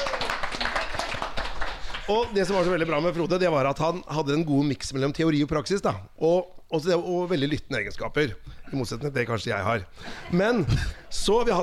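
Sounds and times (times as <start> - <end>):
few people applauding: 0.0 - 2.7
speech: 2.1 - 11.6.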